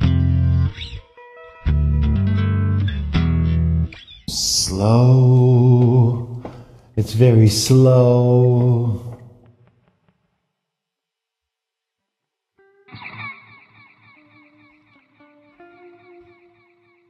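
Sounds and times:
Les Paul electric guitar playing round tones: 0:00.0 - 0:06.7, 0:12.6 - 0:17.0
speech: 0:04.8 - 0:06.3, 0:07.0 - 0:09.1.

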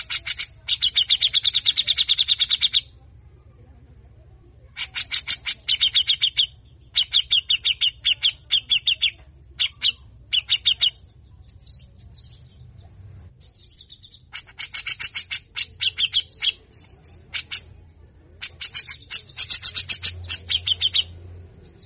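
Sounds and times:
grey-cheeked bulbul rasping buzzy calls: 0:00.0 - 0:02.9, 0:04.8 - 0:11.0, 0:13.8 - 0:17.7, 0:18.4 - 0:21.8.

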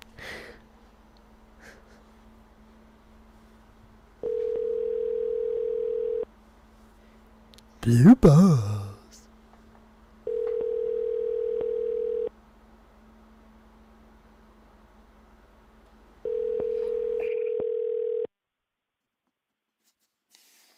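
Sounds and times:
low constant hum: 0:00.0 - 0:18.3
telephone ringback tone on an outgoing call: 0:04.2 - 0:06.2, 0:10.3 - 0:12.3, 0:16.3 - 0:18.3
speech: 0:07.8 - 0:08.7.

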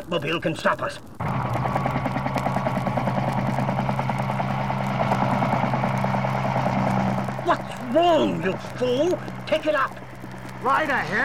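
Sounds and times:
speech: 0:00.1 - 0:01.7, 0:07.5 - 0:10.0, 0:10.6 - 0:11.2
helicopter rotor pulses: 0:01.0 - 0:11.2
helicopter engine: 0:01.2 - 0:11.2.

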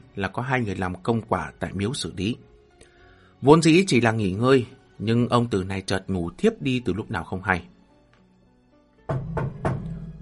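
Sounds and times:
speech: 0:00.2 - 0:02.5, 0:03.4 - 0:07.7, 0:09.1 - 0:09.6
heavy knocking on a door: 0:09.0 - 0:10.1.

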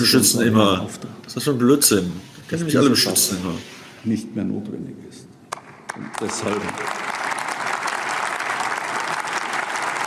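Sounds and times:
speech: 0:00.0 - 0:05.2, 0:06.0 - 0:07.0
audience applause: 0:05.9 - 0:10.0.

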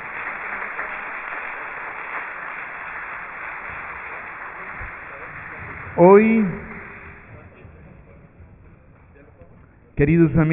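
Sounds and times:
audience applause: 0:00.0 - 0:07.6
speech: 0:06.0 - 0:06.6, 0:10.0 - 0:10.5.

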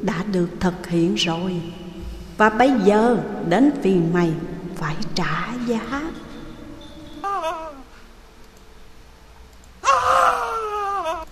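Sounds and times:
speech: 0:00.0 - 0:01.8, 0:02.4 - 0:06.3
person screaming in terror: 0:09.8 - 0:11.3.

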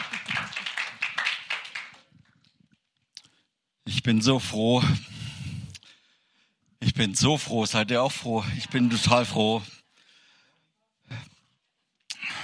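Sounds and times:
audience applause: 0:00.0 - 0:02.2
speech: 0:03.9 - 0:05.1, 0:07.0 - 0:09.8
laughter: 0:08.1 - 0:09.8.

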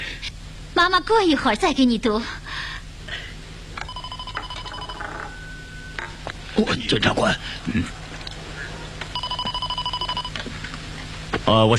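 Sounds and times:
speech: 0:00.8 - 0:02.4, 0:06.6 - 0:08.0, 0:11.5 - 0:11.7
telephone ringing: 0:03.8 - 0:06.2, 0:09.1 - 0:10.4.

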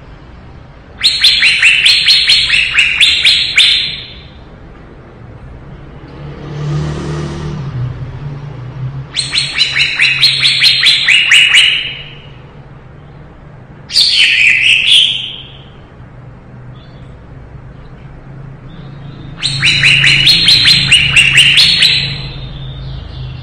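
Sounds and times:
leafbird song: 0:01.0 - 0:04.4, 0:09.2 - 0:15.9, 0:16.7 - 0:23.4.

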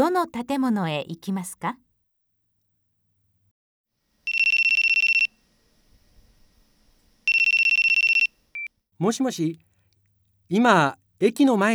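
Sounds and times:
speech: 0:00.1 - 0:01.8, 0:09.0 - 0:09.6, 0:10.5 - 0:11.7
telephone ringing with electronic trills: 0:04.3 - 0:05.4, 0:07.2 - 0:08.7.

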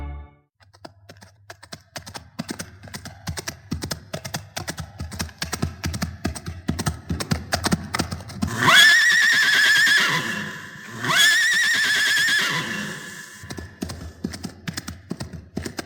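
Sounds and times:
horse hooves clip-clopping: 0:00.6 - 0:09.7, 0:13.4 - 0:15.8
horse whinnying: 0:08.5 - 0:13.5.

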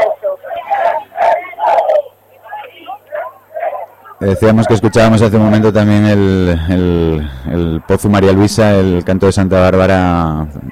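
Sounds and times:
people shouting: 0:00.0 - 0:05.8
low steady hum: 0:00.0 - 0:10.6
speech: 0:04.2 - 0:10.6.

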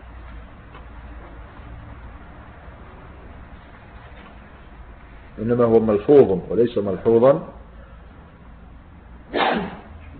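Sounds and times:
speech: 0:05.4 - 0:07.6
sneeze: 0:09.3 - 0:10.0.

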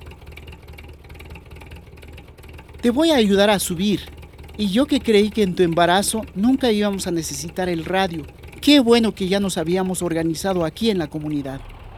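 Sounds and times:
car engine idling on arrival: 0:00.0 - 0:11.9
speech: 0:02.8 - 0:11.7.

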